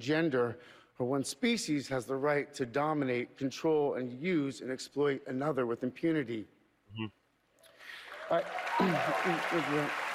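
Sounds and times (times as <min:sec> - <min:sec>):
speech: 0:00.0 - 0:07.2, 0:08.3 - 0:10.0
audience applause: 0:08.0 - 0:10.1.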